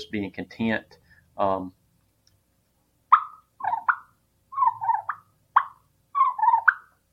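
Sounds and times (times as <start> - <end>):
speech: 0.1 - 1.8
turkey purr made on a turkey call: 3.1 - 6.9.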